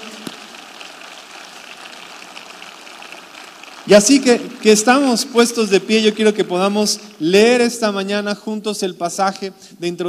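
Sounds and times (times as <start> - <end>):
audience applauding loudly: 0.0 - 8.1
speech: 3.9 - 10.0.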